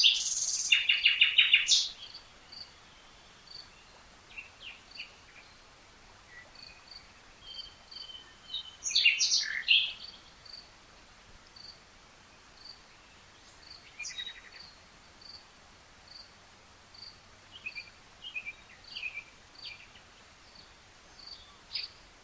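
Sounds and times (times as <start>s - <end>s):
Common nightingale Luscinia megarhynchos singing: 0.0s - 5.6s, 6.3s - 10.7s, 11.6s - 15.4s, 16.9s - 22.0s.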